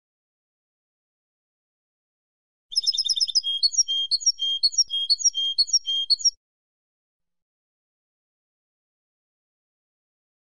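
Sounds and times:
European goldfinch song: 2.7s - 6.4s.

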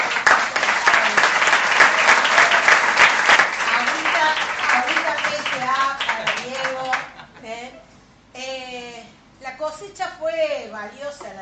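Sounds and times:
applause: 0.0s - 7.2s.

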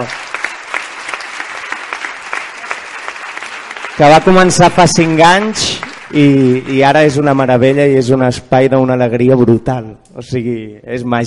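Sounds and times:
speech: 0.0s - 0.3s, 4.0s - 11.2s
audience applause: 0.0s - 7.7s.

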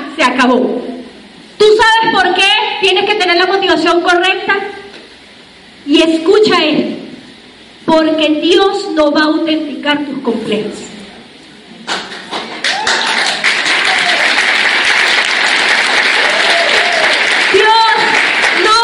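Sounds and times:
speech: 0.2s - 0.9s, 1.6s - 4.8s, 5.9s - 7.0s, 7.9s - 11.0s
audience applause: 11.9s - 18.7s.

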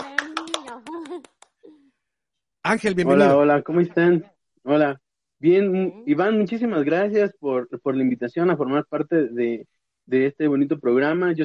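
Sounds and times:
hand claps: 0.0s - 1.6s
speech: 2.7s - 11.4s.

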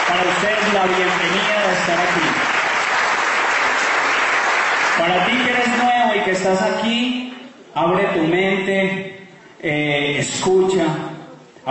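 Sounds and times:
audience applause: 0.0s - 5.9s
speech: 0.1s - 2.6s, 5.0s - 11.7s.

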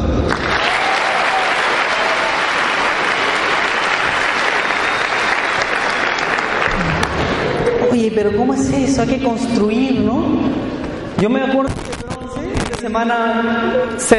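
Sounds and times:
applause: 0.2s - 7.7s
speech: 8.1s - 12.0s, 12.8s - 14.1s.

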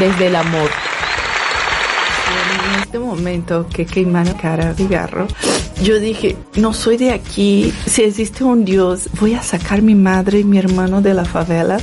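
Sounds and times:
speech: 0.0s - 0.9s, 2.3s - 11.8s
audience applause: 0.0s - 2.9s.

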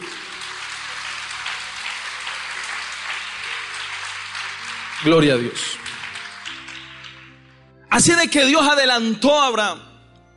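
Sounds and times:
audience applause: 0.0s - 7.5s
speech: 5.0s - 5.9s, 8.0s - 9.9s.

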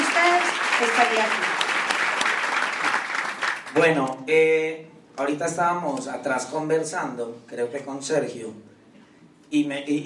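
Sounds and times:
audience applause: 0.0s - 3.8s
speech: 0.8s - 1.6s, 3.8s - 8.7s, 9.5s - 10.0s.

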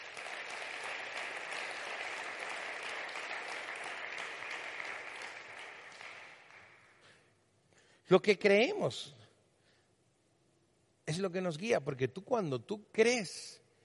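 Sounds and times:
audience applause: 0.0s - 7.0s
speech: 8.1s - 9.2s, 11.2s - 13.6s.

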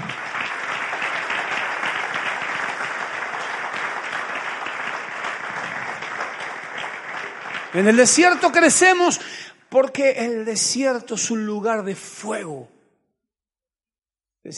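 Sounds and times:
audience applause: 0.0s - 9.0s
speech: 7.7s - 12.8s.

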